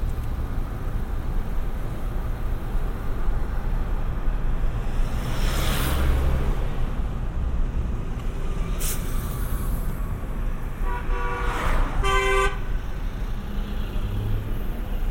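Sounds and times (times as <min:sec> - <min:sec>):
passing street traffic in Sochi: 0:00.0 - 0:15.1
car horn toots: 0:10.8 - 0:12.7.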